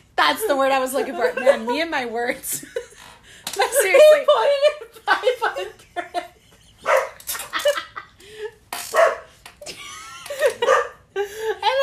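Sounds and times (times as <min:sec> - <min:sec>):
speech: 0:00.2 - 0:02.8, 0:03.6 - 0:06.2
dog barking at home as the owner's mother arrives: 0:06.8 - 0:07.2, 0:09.0 - 0:09.3, 0:10.6 - 0:11.0.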